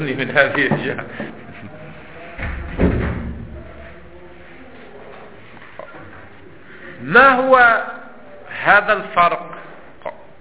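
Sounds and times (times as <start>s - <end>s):
speech: 0.0s - 1.2s, 7.1s - 8.0s, 8.6s - 9.6s
door being closed: 2.4s - 3.9s.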